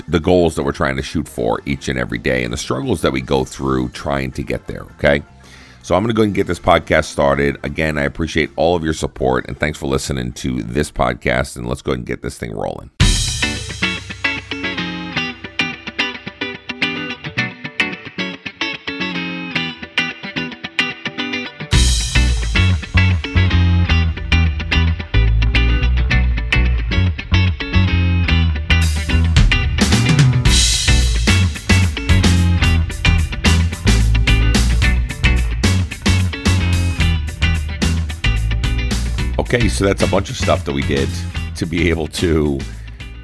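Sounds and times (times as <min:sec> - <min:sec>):
speech: 0:00.1 - 0:13.0, 0:39.5 - 0:42.8
effects-laden instrumental intro music with bass-driven full band: 0:13.0 - 0:43.2.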